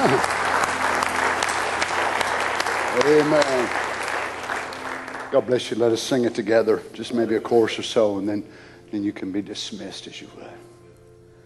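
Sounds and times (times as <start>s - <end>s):
audience applause: 0.0s - 6.0s
speech: 3.0s - 3.9s, 5.3s - 10.7s.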